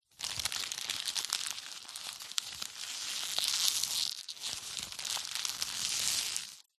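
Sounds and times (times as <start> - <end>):
paper wrapping handled and squeezed: 0.1 - 6.7.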